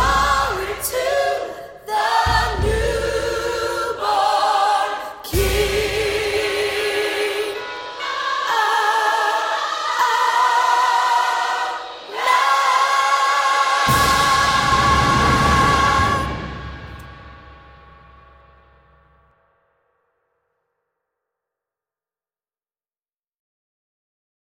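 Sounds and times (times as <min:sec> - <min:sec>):
alto voice singing a carol: 0:00.0 - 0:17.4.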